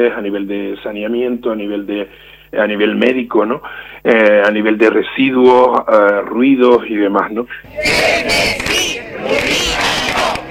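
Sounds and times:
speech: 0.0s - 9.7s
protest crowd shouting slogans: 7.7s - 10.5s.

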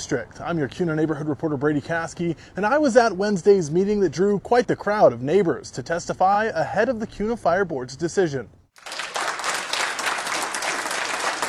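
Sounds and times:
speech: 0.0s - 8.9s
round of applause at meeting: 8.8s - 11.4s.

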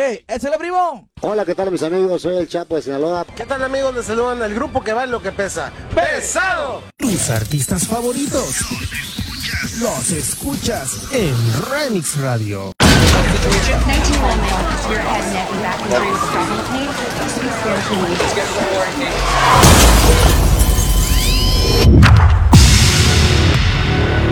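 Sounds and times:
speech: 0.0s - 20.5s
car crash sound effect in a Spanish-language radio ad: 12.8s - 24.2s.

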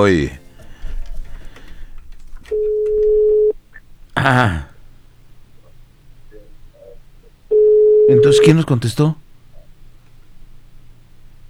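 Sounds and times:
speech: 0.0s - 0.4s, 4.2s - 4.7s, 8.1s - 9.2s
low noise: 0.0s - 11.4s
ringback tone of a redialed telephone call: 2.5s - 3.6s, 7.5s - 8.5s.

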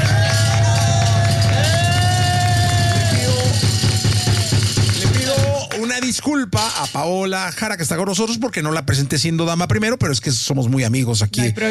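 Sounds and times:
audience applause: 0.0s - 6.3s
speech: 6.3s - 11.6s.

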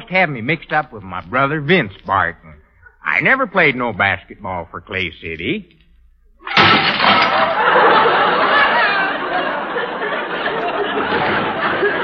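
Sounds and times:
speech: 0.1s - 2.6s, 3.2s - 5.8s
dropped dishes crashing to the floor and shattering: 6.4s - 8.6s
laughter: 7.0s - 12.0s.

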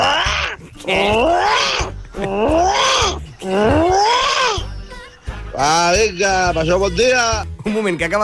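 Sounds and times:
human voice imitating an armadillo: 0.0s - 6.0s
speech: 0.8s - 3.8s, 5.6s - 8.2s.

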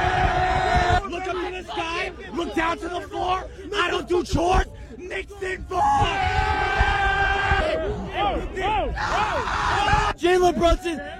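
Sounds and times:
basketball fans cheering: 0.0s - 2.5s, 5.8s - 11.1s
individual fans yelling and whooping: 0.0s - 11.1s
speech: 2.5s - 6.9s, 7.8s - 11.1s.

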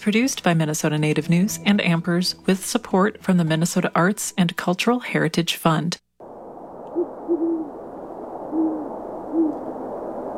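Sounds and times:
speech: 0.0s - 6.0s
great horned owl calm soft hoot: 6.9s - 7.8s, 8.4s - 10.0s.

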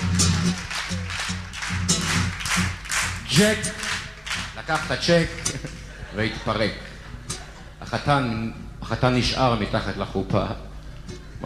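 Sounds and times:
audience applause: 0.0s - 6.0s
speech: 3.3s - 3.8s, 4.7s - 5.6s, 6.2s - 6.9s, 7.9s - 10.7s
laughter: 5.0s - 8.4s.

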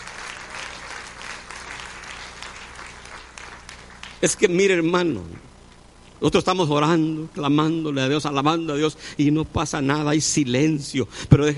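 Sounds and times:
audience applause: 0.0s - 4.4s
speech: 4.2s - 5.5s, 6.2s - 11.5s.

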